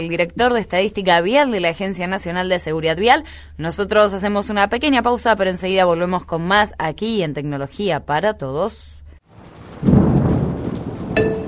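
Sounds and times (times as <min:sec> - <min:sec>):
speech: 0:00.0 - 0:09.0, 0:11.2 - 0:11.4
deep thunder rumble: 0:09.3 - 0:11.4
rain hissing: 0:09.3 - 0:11.4.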